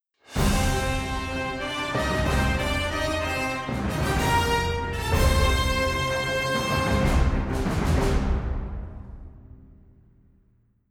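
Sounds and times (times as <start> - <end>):
victory jingle: 0.4 - 8.3.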